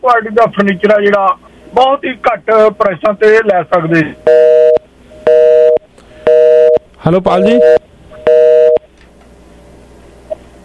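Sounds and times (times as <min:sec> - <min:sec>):
speech: 0:00.0 - 0:04.6, 0:07.0 - 0:07.9
telephone busy tone after a caller's line dropped: 0:04.2 - 0:06.8, 0:07.4 - 0:08.9.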